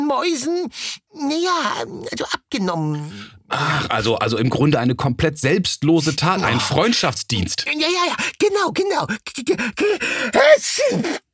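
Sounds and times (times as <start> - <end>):
speech: 0.1 - 11.2
sneeze: 10.6 - 11.2.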